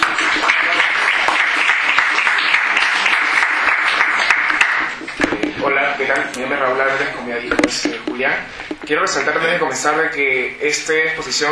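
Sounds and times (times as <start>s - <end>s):
audience applause: 0.0s - 5.2s
speech: 6.3s - 11.4s.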